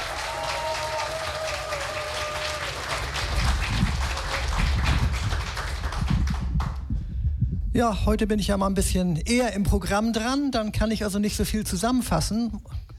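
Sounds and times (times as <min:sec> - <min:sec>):
audience applause: 0:00.0 - 0:06.9
speech: 0:07.8 - 0:12.8.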